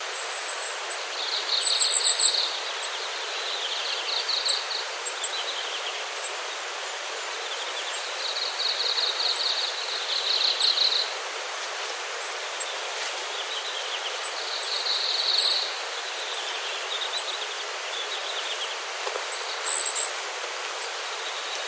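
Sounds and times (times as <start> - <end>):
Goldcrest calls: 0.0 - 21.6
steady rustling background noise: 11.2 - 14.2, 17.6 - 21.6.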